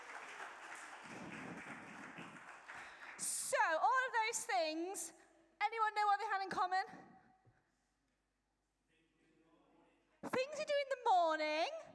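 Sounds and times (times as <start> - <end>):
audience applause: 0.0 - 3.2
speech: 4.1 - 7.1, 10.5 - 11.9.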